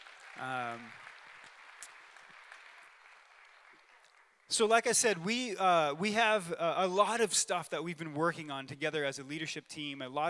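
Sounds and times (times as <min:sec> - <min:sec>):
audience clapping: 0:00.0 - 0:07.0
speech: 0:00.4 - 0:01.1, 0:04.5 - 0:10.2.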